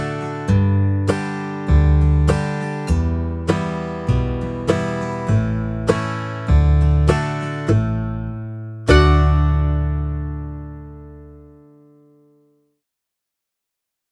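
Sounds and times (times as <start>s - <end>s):
backing track at 50 BPM: 0.0s - 11.2s.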